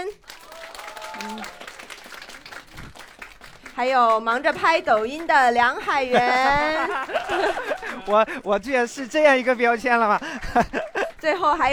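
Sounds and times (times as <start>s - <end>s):
audience applause welcoming a guest on a variety show stage: 0.0s - 8.8s
speech: 1.2s - 1.6s, 3.8s - 11.7s
laughter: 5.6s - 11.7s.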